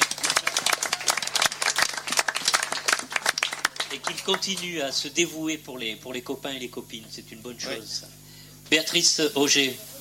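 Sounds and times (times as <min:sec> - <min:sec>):
crowd clapping: 0:00.0 - 0:05.1
speech: 0:04.0 - 0:09.9.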